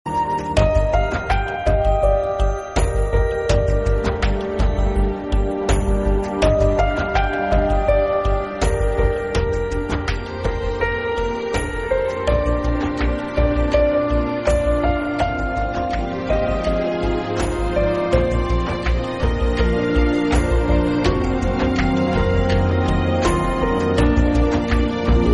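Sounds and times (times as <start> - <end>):
piano: 0.0 - 25.3.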